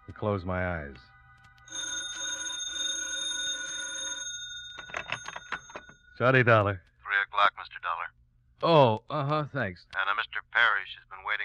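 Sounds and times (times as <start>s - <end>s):
speech: 0.2s - 1.1s, 6.2s - 11.4s
old-fashioned telephone bell ringing: 1.6s - 6.2s.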